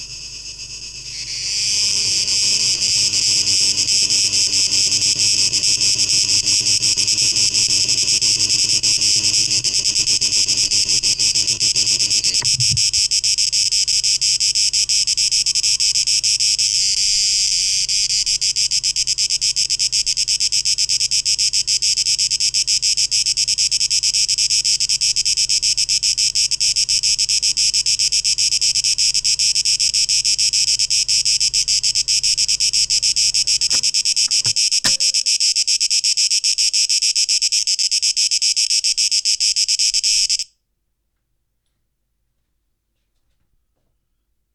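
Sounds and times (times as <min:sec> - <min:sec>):
cicadas buzzing: 0:00.0 - 0:40.5
sharp clicks: 0:33.6 - 0:35.3.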